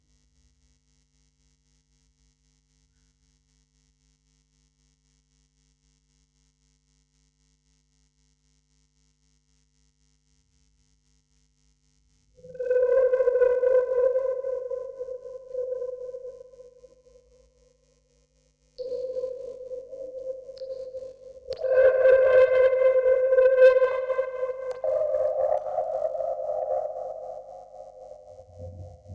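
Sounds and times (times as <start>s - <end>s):
vocoder: 12.4s - 16.7s, 18.8s - 29.1s.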